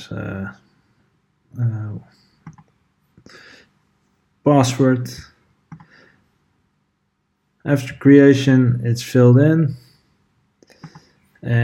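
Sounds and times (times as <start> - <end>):
speech: 0.0 - 0.7, 1.5 - 2.6, 4.4 - 5.3, 7.6 - 9.8, 11.4 - 11.6
computer mouse clicks on an OK button: 2.4 - 2.8, 5.7 - 5.9, 10.7 - 11.1.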